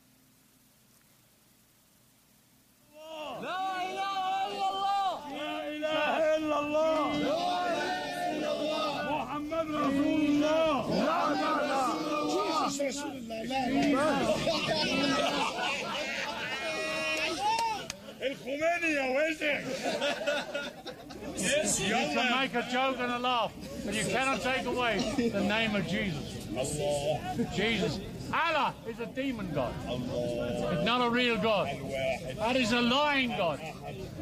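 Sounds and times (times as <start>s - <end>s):
crowd chatter: 2.9s - 34.2s
laughter: 13.7s - 18.4s, 19.5s - 22.8s
speech: 18.3s - 34.2s.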